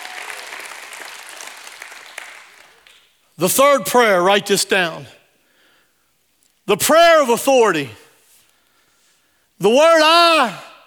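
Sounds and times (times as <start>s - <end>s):
audience clapping: 0.0s - 3.2s
speech: 3.4s - 5.2s, 6.7s - 8.0s, 9.6s - 10.7s.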